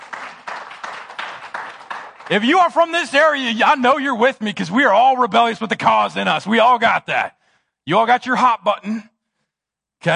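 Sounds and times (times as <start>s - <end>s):
audience clapping in a steady rhythm: 0.0s - 3.6s
speech: 2.3s - 9.1s, 10.0s - 10.1s.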